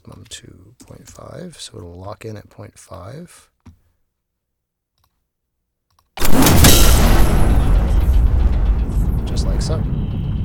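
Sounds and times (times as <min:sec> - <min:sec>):
speech: 0:00.2 - 0:03.5, 0:09.4 - 0:10.2
designed space gun sound effect: 0:06.2 - 0:10.4.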